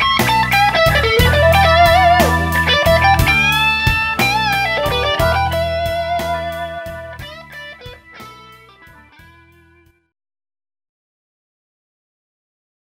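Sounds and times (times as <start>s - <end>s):
P90 blues electric guitar through 2x12 cabinet with Celestion speakers: 0.0s - 9.8s.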